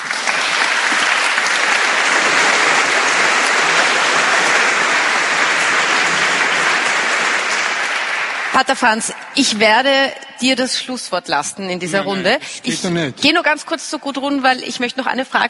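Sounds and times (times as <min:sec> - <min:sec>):
crowd applause: 0:00.0 - 0:09.4
speech: 0:08.6 - 0:15.4.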